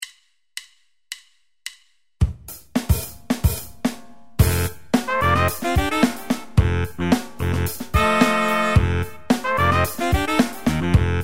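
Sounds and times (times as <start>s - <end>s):
funk music: 2.2s - 11.2s.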